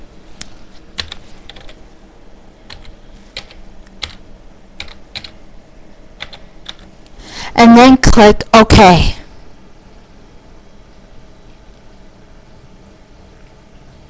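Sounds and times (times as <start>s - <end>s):
password typed on a computer keyboard: 1.0s - 1.8s, 2.7s - 4.2s, 4.8s - 5.4s, 6.2s - 6.9s
speech: 7.6s - 9.2s.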